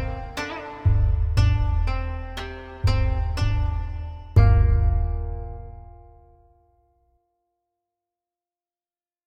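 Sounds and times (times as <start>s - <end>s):
koto: 0.0s - 6.9s.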